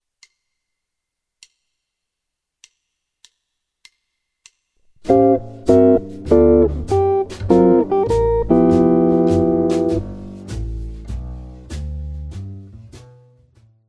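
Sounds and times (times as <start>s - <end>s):
guitar lick: 5.0s - 10.6s.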